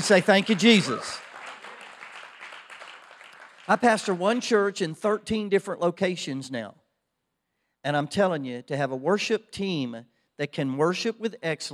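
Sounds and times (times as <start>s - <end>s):
speech: 0.0s - 1.2s, 3.7s - 6.8s, 7.8s - 11.7s
audience clapping hands: 0.0s - 4.8s.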